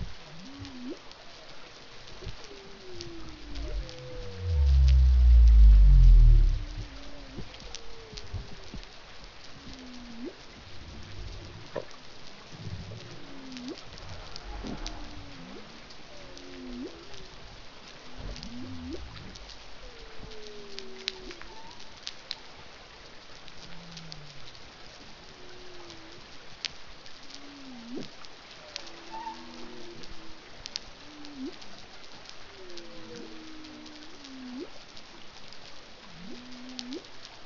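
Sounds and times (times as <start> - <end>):
pygmy blue whale song: 0.3 - 1.0, 2.2 - 8.8, 9.6 - 12.1, 12.8 - 22.0, 27.3 - 31.8, 32.5 - 34.7, 36.0 - 37.1.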